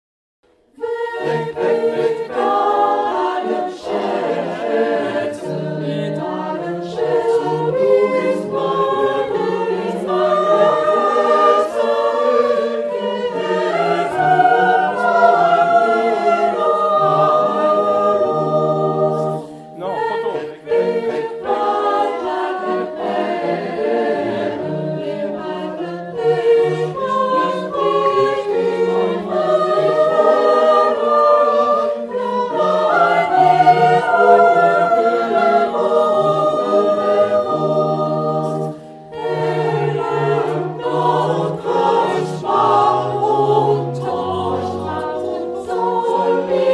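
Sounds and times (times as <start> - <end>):
chorale repetition: 0.5 - 46.7.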